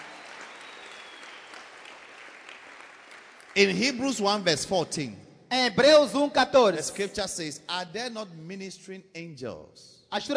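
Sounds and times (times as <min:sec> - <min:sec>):
church congregation clapping during a service: 0:00.0 - 0:04.8
speech: 0:03.6 - 0:10.3.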